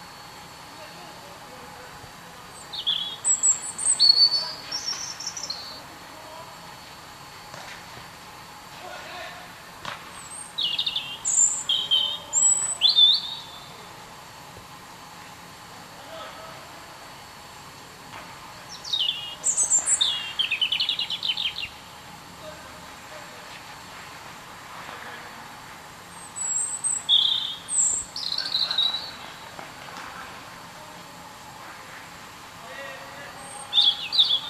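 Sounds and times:
European robin singing: 2.5 - 6.4, 10.1 - 13.9, 18.6 - 21.8, 26.1 - 29.6, 33.1 - 34.4.

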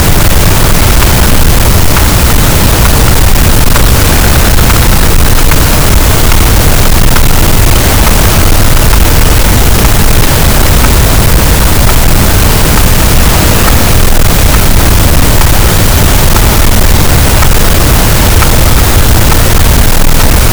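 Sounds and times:
gaussian noise: 0.0 - 20.5
sperm whale Physeter macrocephalus: 0.0 - 20.5.

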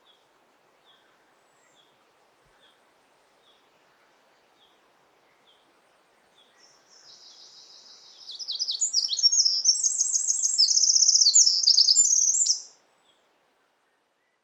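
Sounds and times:
light background hiss: 0.0 - 14.4
Eurasian wren song: 6.5 - 12.8.

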